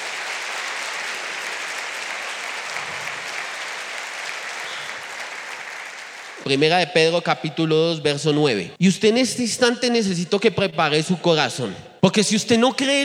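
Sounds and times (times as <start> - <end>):
audience applause: 0.0 - 6.8
speech: 6.4 - 13.0.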